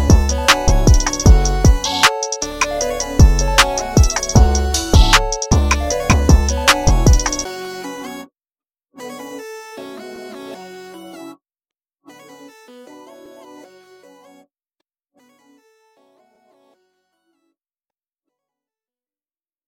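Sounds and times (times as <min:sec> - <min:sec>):
instrumental rap hip hop beats: 0:00.0 - 0:07.6.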